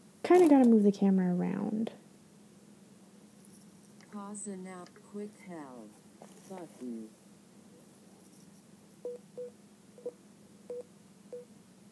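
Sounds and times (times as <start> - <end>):
speech: 0.3 - 2.0, 4.2 - 7.2
barcode scanner app beeping: 9.0 - 11.5.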